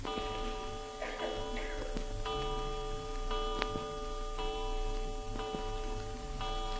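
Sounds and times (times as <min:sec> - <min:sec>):
clock chiming: 0:00.0 - 0:06.7.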